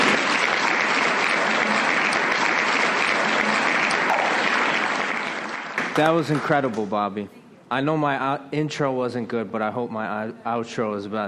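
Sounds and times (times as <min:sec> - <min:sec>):
audience applause: 0:00.0 - 0:06.8
speech: 0:06.0 - 0:11.2.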